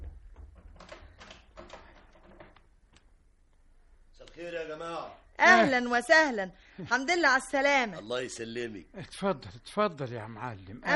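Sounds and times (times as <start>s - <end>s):
door thud: 0.0s - 2.6s
speech: 4.4s - 10.9s.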